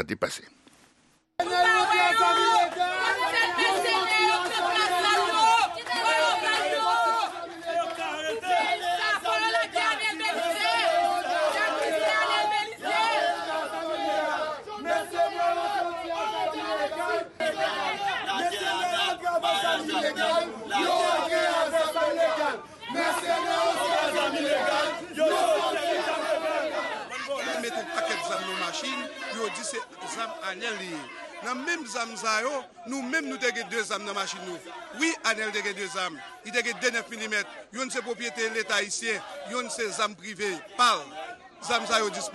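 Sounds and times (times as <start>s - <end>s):
speech: 0.0s - 0.6s, 28.4s - 42.3s
large crowd shouting and chanting in protest: 1.4s - 42.3s.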